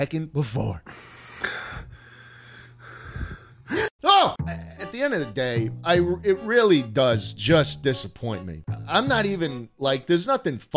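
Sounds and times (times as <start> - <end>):
speech: 0.0 - 1.1, 5.0 - 10.7
heavy breathing: 0.8 - 3.9.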